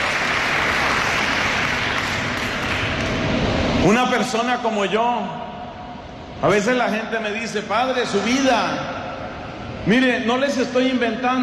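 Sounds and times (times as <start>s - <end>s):
audience applause: 0.0s - 3.3s
speech: 3.8s - 5.4s, 6.4s - 8.9s, 9.8s - 11.4s.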